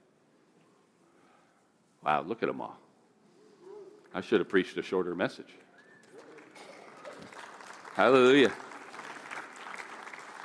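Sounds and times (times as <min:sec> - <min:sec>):
speech: 0:02.0 - 0:02.9, 0:04.1 - 0:05.6, 0:08.0 - 0:08.6
audience clapping: 0:05.6 - 0:10.4.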